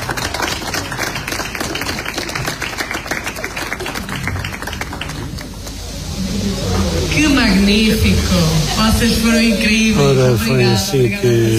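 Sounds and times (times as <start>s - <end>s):
audience applause: 0.0s - 7.3s
speech: 7.7s - 11.5s.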